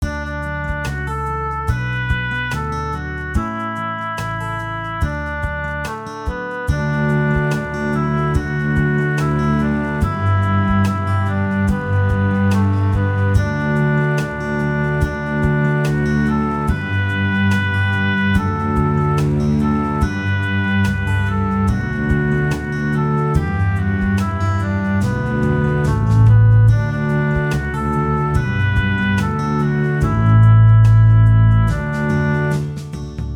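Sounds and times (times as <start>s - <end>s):
bass: 0.0s - 33.3s.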